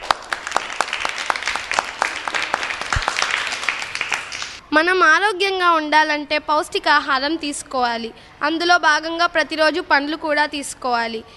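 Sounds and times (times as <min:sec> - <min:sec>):
audience clapping for children after a school performance: 0:00.0 - 0:04.6
speech: 0:04.8 - 0:11.3.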